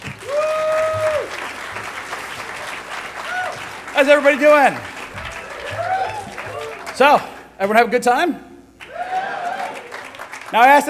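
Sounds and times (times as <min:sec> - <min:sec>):
audience round of applause: 0:00.0 - 0:07.9, 0:08.8 - 0:10.8
speech: 0:04.0 - 0:04.9, 0:07.0 - 0:08.4, 0:10.5 - 0:10.8.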